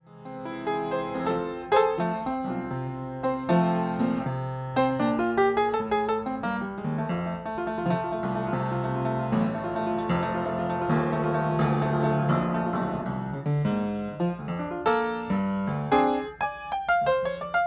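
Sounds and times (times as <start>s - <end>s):
piano: 0.0s - 17.6s.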